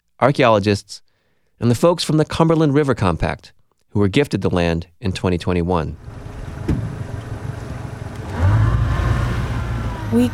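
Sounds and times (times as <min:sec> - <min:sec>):
speech: 0:00.2 - 0:06.3, 0:10.1 - 0:10.3
pontoon boat motor droning: 0:06.0 - 0:10.3.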